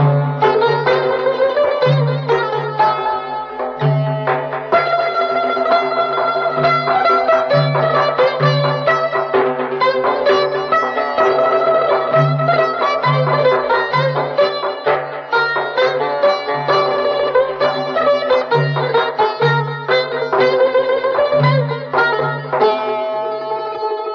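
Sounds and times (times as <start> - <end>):
instrumental prelude performance in the Shur mode: 0.0 - 24.1.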